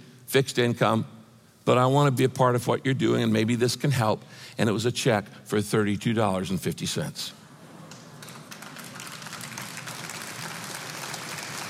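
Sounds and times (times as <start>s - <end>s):
speech: 0.3s - 7.4s
weak audience clapping: 7.7s - 11.6s.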